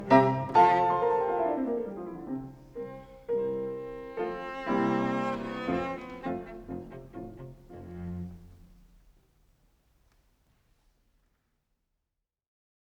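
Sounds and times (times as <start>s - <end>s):
cello piece in F major: 0.0s - 8.9s.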